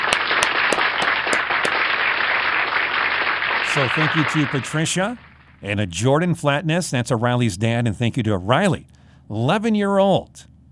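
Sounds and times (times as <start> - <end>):
clapping: 0.0 - 4.6
speech: 3.7 - 10.5.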